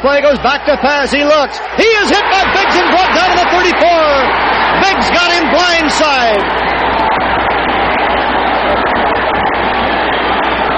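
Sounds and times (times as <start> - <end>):
speech: 0.0 - 7.0
stadium crowd roaring: 0.0 - 10.7.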